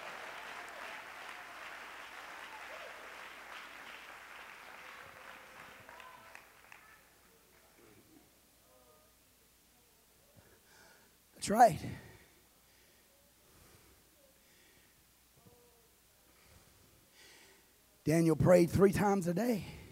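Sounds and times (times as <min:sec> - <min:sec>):
audience applause: 0:00.0 - 0:07.7
speech: 0:11.4 - 0:12.0, 0:18.1 - 0:19.8.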